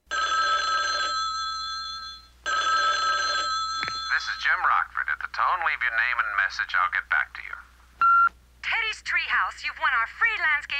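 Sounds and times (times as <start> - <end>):
telephone ringing: 0.1 - 4.8
speech: 4.4 - 7.6, 9.1 - 10.7.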